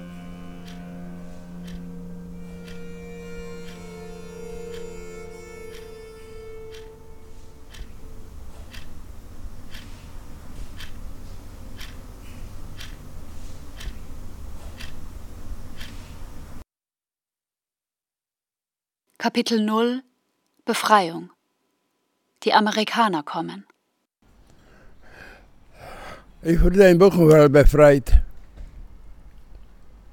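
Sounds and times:
many clocks ticking: 0.6s - 11.0s, 11.6s - 14.0s, 14.8s - 15.1s, 15.8s - 16.0s
speech: 19.2s - 20.1s, 20.7s - 21.4s, 22.4s - 23.7s, 26.4s - 28.1s.

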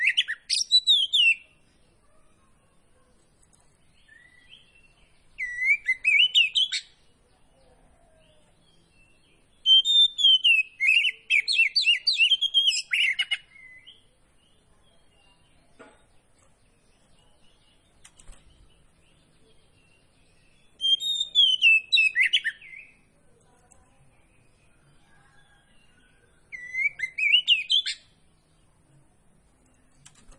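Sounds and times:
Oriental magpie-robin singing: 0.0s - 1.6s, 3.8s - 7.2s, 8.2s - 23.1s, 24.2s - 28.5s
faint clicks: 3.2s - 3.8s, 18.0s - 18.6s, 23.4s - 23.9s, 29.5s - 30.3s.

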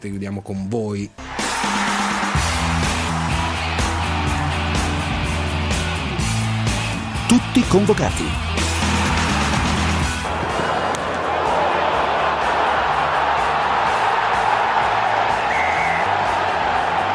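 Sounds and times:
speech: 0.0s - 2.0s, 7.3s - 8.5s
rugby stadium crowd roaring: 1.2s - 17.1s.

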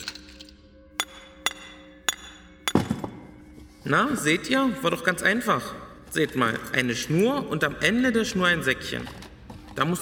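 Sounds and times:
hammer and chisel tapping on a shell tip: 1.0s - 3.4s
speech: 3.8s - 9.2s, 9.8s - 9.9s.

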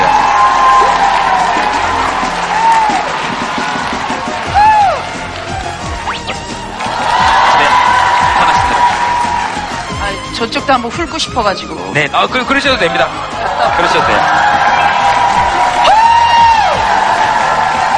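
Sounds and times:
studio audience applauding to welcome a talk show guest: 0.0s - 10.0s, 13.1s - 17.9s
speech: 10.7s - 14.5s
scattered whoops and voices: 15.8s - 16.8s.

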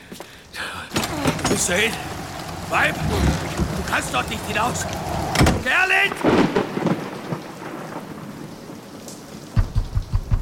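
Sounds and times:
heavy rain: 0.0s - 10.2s
thunder rumbling: 0.9s - 10.3s
speech: 1.6s - 2.1s, 2.7s - 6.5s.

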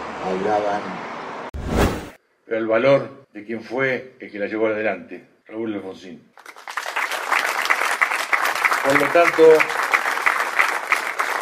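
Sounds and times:
speech: 0.3s - 1.1s, 2.5s - 6.6s, 8.8s - 9.8s
audience applause: 6.4s - 11.3s.

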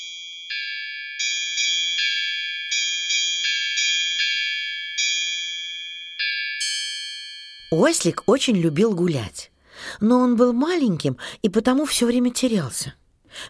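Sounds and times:
small bell ringing: 0.0s - 9.4s
speech: 7.7s - 13.4s.

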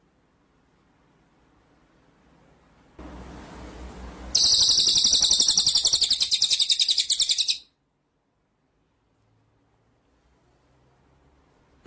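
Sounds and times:
white-rumped shama song: 4.3s - 7.7s.

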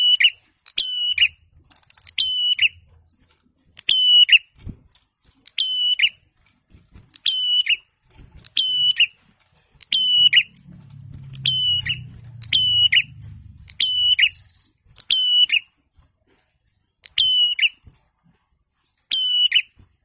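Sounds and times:
prinia song of high flat whistles with burry endings: 0.0s - 1.4s, 2.0s - 2.9s, 3.8s - 4.5s, 5.5s - 6.2s, 7.2s - 7.9s, 8.5s - 9.2s, 9.8s - 15.7s, 17.0s - 17.8s, 19.1s - 19.8s.

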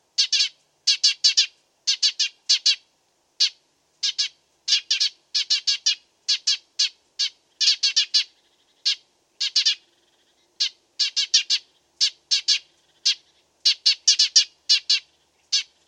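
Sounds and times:
Dead Sea sparrow chirping: 0.2s - 2.8s, 3.4s - 15.8s.

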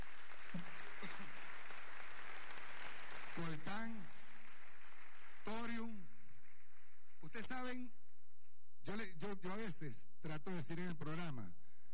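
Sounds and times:
crowd applauding: 0.0s - 7.2s
speech: 3.4s - 4.1s, 5.7s - 6.0s, 7.3s - 8.0s, 8.8s - 11.6s.

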